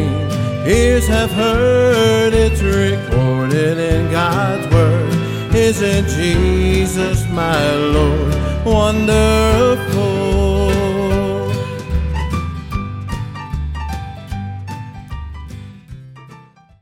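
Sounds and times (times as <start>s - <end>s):
rhythm section playing: 0.0s - 16.4s.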